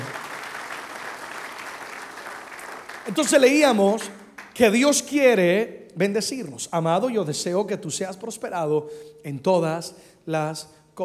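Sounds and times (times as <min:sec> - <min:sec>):
crowd applauding: 0:00.0 - 0:04.7
speech: 0:03.1 - 0:11.0.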